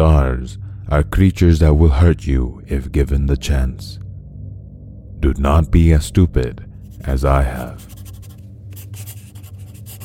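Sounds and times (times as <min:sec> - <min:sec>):
speech: 0:00.0 - 0:04.0, 0:05.2 - 0:07.9
low hum: 0:00.0 - 0:10.0
pen writing on paper: 0:07.8 - 0:10.0.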